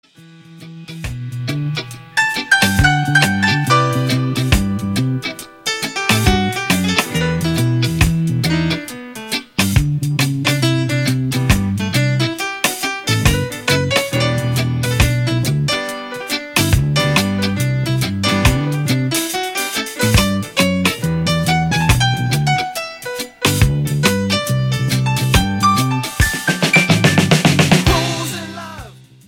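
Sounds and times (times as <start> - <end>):
piano: 0.4 - 29.0.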